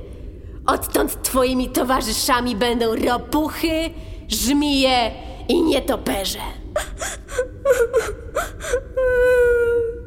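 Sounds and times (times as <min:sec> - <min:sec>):
speech: 0:00.7 - 0:09.4
person crying with gasping sobs and a high wail: 0:06.7 - 0:10.0.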